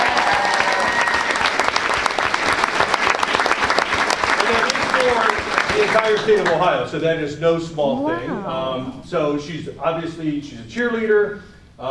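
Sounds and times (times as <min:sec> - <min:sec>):
audience applause: 0:00.0 - 0:06.8
speech: 0:06.0 - 0:11.8.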